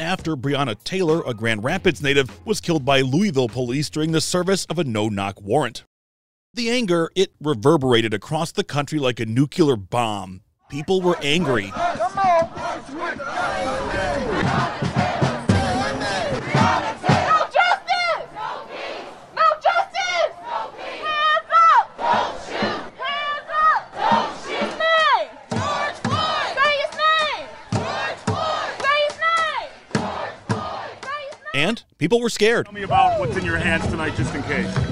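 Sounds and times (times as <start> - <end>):
speech: 0.0 - 5.9, 6.5 - 14.9, 31.7 - 34.8
protest crowd chanting: 10.6 - 31.6.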